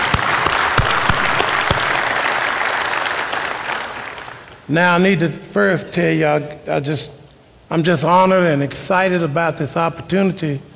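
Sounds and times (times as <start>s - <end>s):
room full of people applauding: 0.0s - 4.6s
speech: 4.7s - 10.7s.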